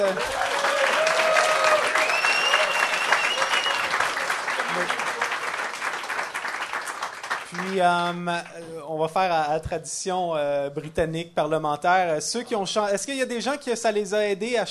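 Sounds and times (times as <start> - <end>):
speech: 0.0 - 0.5, 7.7 - 14.6
people whooping: 0.0 - 5.4
crowd clapping: 0.0 - 8.2.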